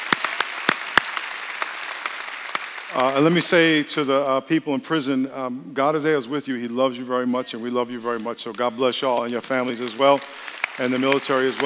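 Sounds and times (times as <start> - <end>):
audience applause: 0.0 - 4.0, 9.2 - 11.6
speech: 2.9 - 11.6.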